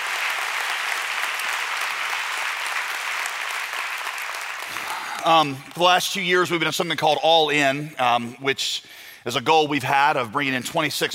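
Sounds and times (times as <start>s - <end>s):
audience applause and cheering: 0.0s - 6.0s
speech: 5.2s - 11.1s.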